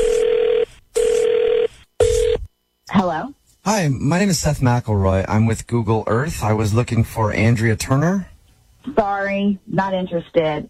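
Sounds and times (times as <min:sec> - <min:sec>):
phone line ringing tone through the receiver: 0:00.0 - 0:02.4
speech: 0:03.1 - 0:10.6.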